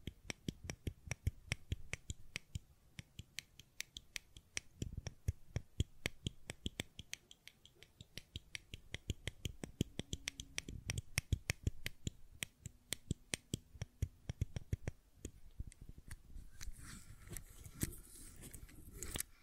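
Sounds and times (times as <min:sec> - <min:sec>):
fidget cube clicking and tapping: 0:00.0 - 0:16.7.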